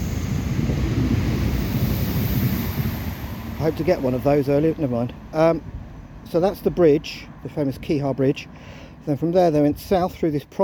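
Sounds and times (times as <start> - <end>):
train going by: 0.0 - 7.5
speech: 3.6 - 10.6.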